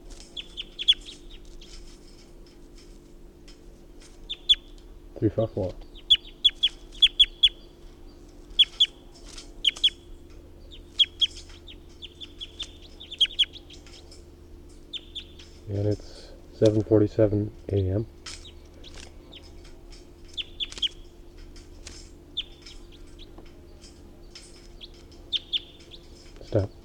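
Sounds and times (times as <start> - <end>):
bird calling: 0.0 - 2.2, 4.1 - 16.8, 17.5 - 26.8
speech: 5.2 - 5.9, 15.8 - 18.2.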